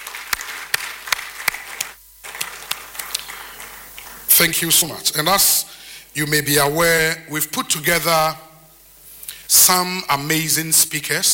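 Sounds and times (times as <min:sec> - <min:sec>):
crowd applauding: 0:00.0 - 0:05.0
speech: 0:04.4 - 0:08.5, 0:09.5 - 0:11.3.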